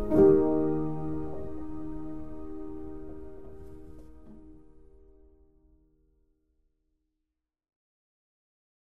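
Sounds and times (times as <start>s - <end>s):
piano music: 0.0s - 5.8s.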